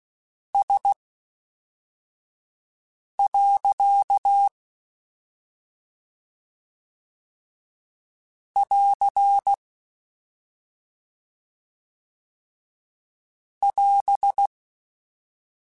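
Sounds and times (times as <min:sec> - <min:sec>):
Morse code beeps: 0:03.2 - 0:04.5, 0:08.6 - 0:09.6, 0:13.6 - 0:14.5.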